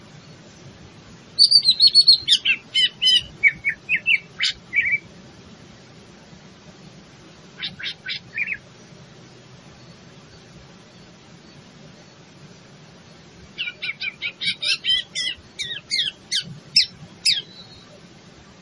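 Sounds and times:
leafbird cucak ijo singing rapid high chatter and twisting whistled notes: 0:01.4 - 0:05.0, 0:07.6 - 0:08.7, 0:13.1 - 0:18.0.

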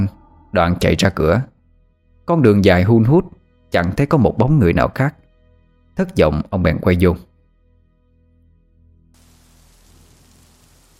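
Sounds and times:
speech: 0:00.0 - 0:01.5, 0:02.3 - 0:05.2, 0:06.0 - 0:07.3
low humming drone: 0:09.2 - 0:10.9
rain falling: 0:09.2 - 0:10.9.

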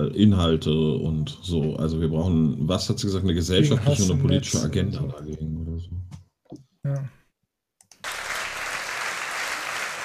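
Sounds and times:
speech: 0:00.0 - 0:05.6
audience clapping: 0:07.9 - 0:10.0.

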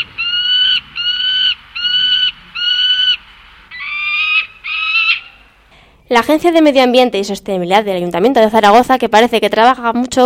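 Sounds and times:
peregrine falcon calling: 0:00.0 - 0:05.7
speech: 0:06.1 - 0:10.2.

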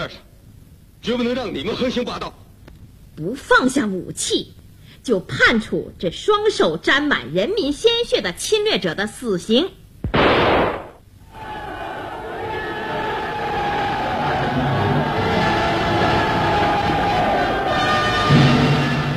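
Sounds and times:
speech: 0:00.0 - 0:00.3, 0:01.0 - 0:02.4, 0:03.2 - 0:09.8
crowd cheering in celebration: 0:11.3 - 0:19.1.

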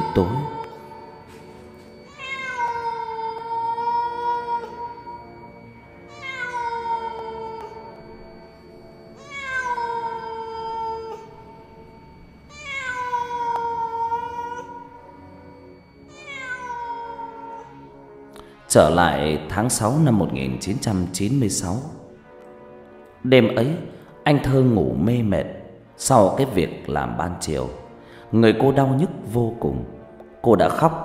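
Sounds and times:
cat meowing plaintively in the night: 0:00.0 - 0:08.0, 0:09.1 - 0:11.8, 0:12.4 - 0:18.0
speech: 0:00.2 - 0:00.4, 0:18.8 - 0:22.0, 0:23.2 - 0:31.0.

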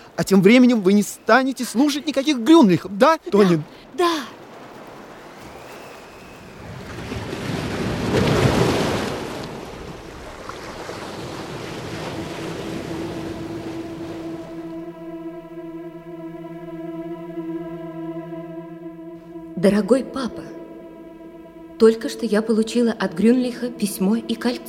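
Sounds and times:
speech: 0:00.2 - 0:04.4, 0:19.6 - 0:20.5, 0:21.8 - 0:24.6
surf rushing and hissing at the seaside: 0:03.2 - 0:14.7
sustained humming musical chord: 0:12.4 - 0:24.6.

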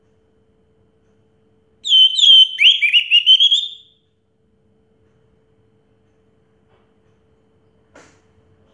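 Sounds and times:
orange-headed thrush whistling song: 0:01.8 - 0:03.9.

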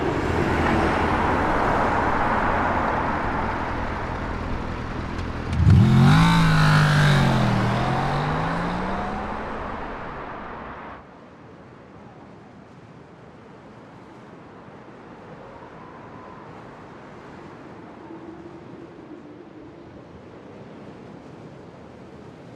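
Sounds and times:
highway traffic heard from a bridge above the highway: 0:00.0 - 0:11.0
loud vehicle sweeping past: 0:00.0 - 0:11.0.

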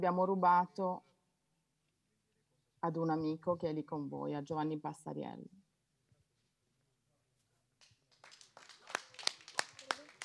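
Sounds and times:
speech: 0:00.0 - 0:01.1, 0:02.8 - 0:05.6
scattered audience clapping at a festival performance: 0:07.8 - 0:10.2.

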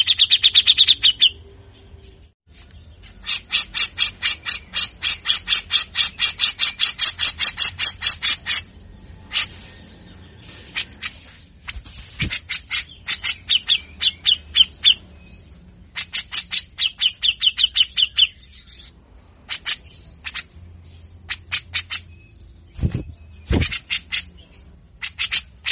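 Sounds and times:
grey-cheeked bulbul rasping song in buzzy pulses: 0:00.0 - 0:25.7.

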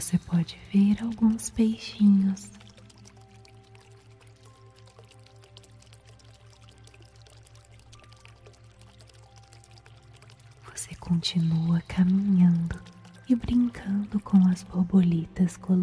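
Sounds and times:
speech: 0:00.0 - 0:02.6, 0:11.0 - 0:15.8
water flowing in a fountain: 0:00.0 - 0:15.8.

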